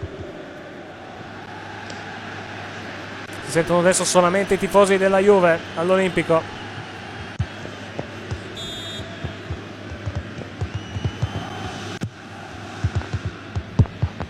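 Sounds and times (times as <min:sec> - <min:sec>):
speech: 0:03.5 - 0:06.6
fingers tapping on a microphone: 0:09.2 - 0:11.6, 0:12.8 - 0:14.2.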